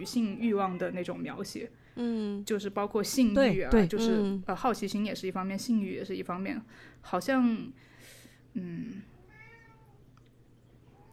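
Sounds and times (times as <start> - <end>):
speech: 0.0 - 7.9, 8.5 - 9.1
cat meowing: 9.2 - 10.0.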